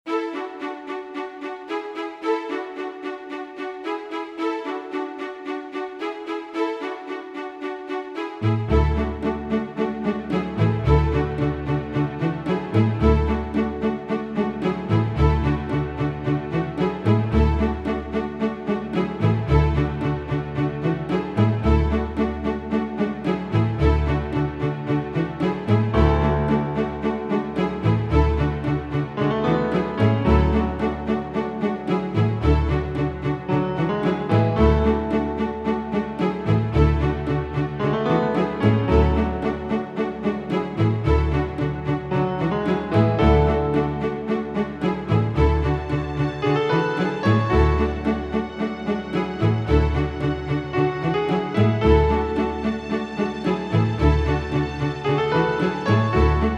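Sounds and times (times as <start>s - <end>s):
corporate music: 4.6s - 56.5s.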